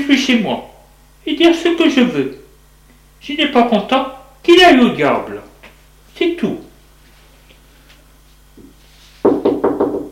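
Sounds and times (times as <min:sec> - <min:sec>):
speech: 0:00.0 - 0:02.4, 0:03.2 - 0:05.5, 0:06.2 - 0:06.7
firm knocking on a door: 0:09.2 - 0:10.1.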